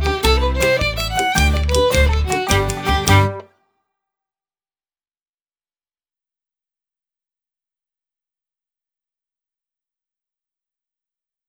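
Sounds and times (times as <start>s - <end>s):
galloping and skipping: 0.0s - 3.4s.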